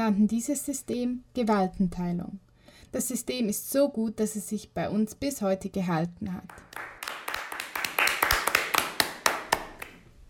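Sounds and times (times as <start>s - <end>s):
speech: 0.1s - 6.9s
applause: 6.5s - 10.1s.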